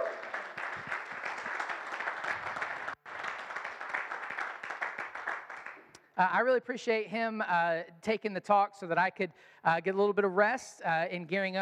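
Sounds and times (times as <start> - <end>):
applause: 0.0 - 6.0
speech: 6.2 - 11.5.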